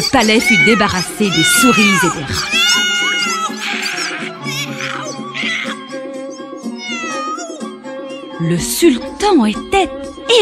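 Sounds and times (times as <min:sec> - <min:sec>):
speech: 0:00.1 - 0:03.1, 0:08.4 - 0:10.4
cat meowing: 0:00.2 - 0:05.8, 0:06.7 - 0:07.7.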